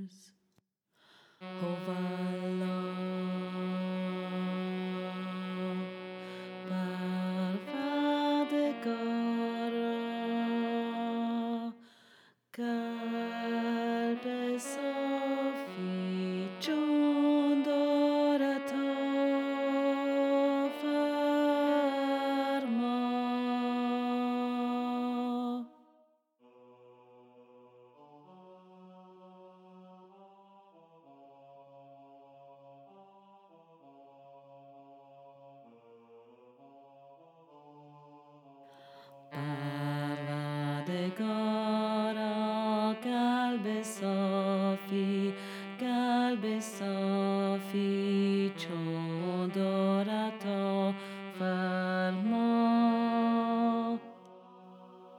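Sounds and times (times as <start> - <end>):
tenor singing: 1.4 - 11.8, 12.6 - 25.8, 39.3 - 55.1.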